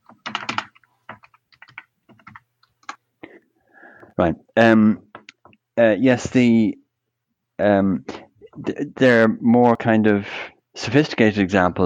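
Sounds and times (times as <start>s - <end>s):
typing a password on a computer keyboard: 0.0s - 3.0s
speech: 4.2s - 5.0s, 5.8s - 6.8s, 7.6s - 11.8s.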